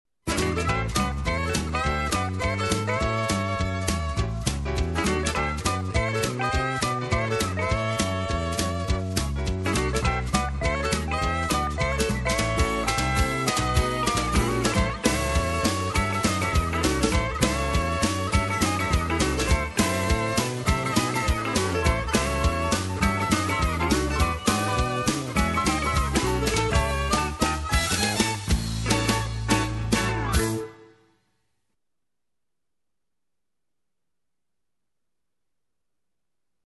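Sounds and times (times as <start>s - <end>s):
western swing music: 0.2s - 31.1s.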